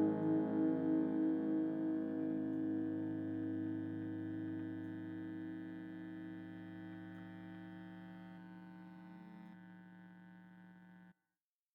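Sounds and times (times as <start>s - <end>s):
guitar: 0.0s - 7.8s.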